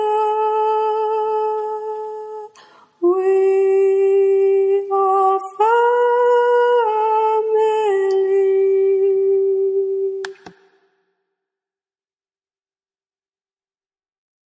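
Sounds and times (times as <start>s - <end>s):
soprano singing: 0.0s - 10.5s.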